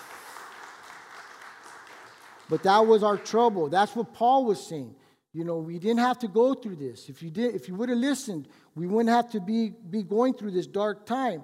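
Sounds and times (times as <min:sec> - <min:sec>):
audience applause: 0:00.0 - 0:03.4
speech: 0:02.5 - 0:11.4.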